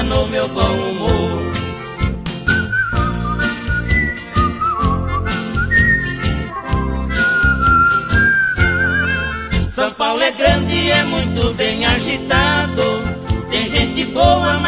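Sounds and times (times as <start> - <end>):
instrumental backing music: 0.0 - 14.6
speech: 0.1 - 1.5
person whistling a melody: 1.4 - 9.8.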